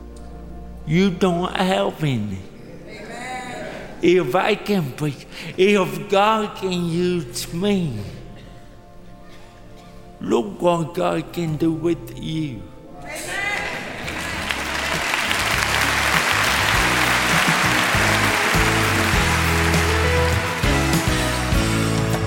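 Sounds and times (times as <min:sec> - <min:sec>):
speech: 0:00.9 - 0:02.5, 0:04.0 - 0:08.2, 0:10.2 - 0:12.7
thunderous audience applause: 0:13.6 - 0:22.1.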